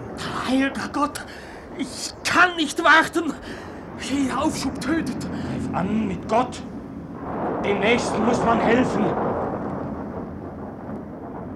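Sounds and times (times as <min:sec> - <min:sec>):
thunderstorm with Föhn wind over a lake in a radio drama: 0:00.0 - 0:11.5
speech: 0:00.5 - 0:06.7, 0:07.6 - 0:09.3.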